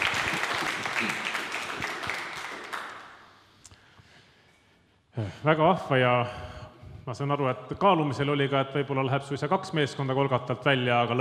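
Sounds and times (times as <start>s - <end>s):
applause: 0.0s - 3.4s
speech: 5.2s - 6.5s, 7.1s - 11.1s.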